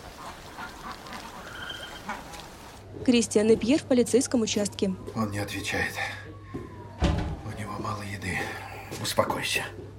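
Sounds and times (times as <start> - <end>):
geese settling for the night honking softly: 0.0 - 2.8
speech: 3.0 - 6.2, 9.1 - 9.8.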